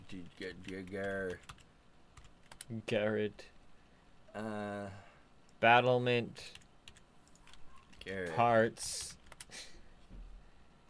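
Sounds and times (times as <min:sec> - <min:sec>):
speech: 0:00.1 - 0:01.6, 0:02.7 - 0:03.5, 0:04.4 - 0:06.6, 0:08.0 - 0:09.7
faint typing on a computer keyboard: 0:00.4 - 0:02.7, 0:06.5 - 0:08.1.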